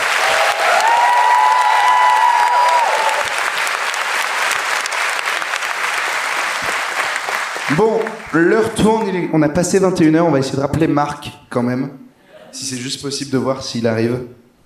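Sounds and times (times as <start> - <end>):
studio audience applause for a guest: 0.0 - 9.2
speech: 7.8 - 14.4.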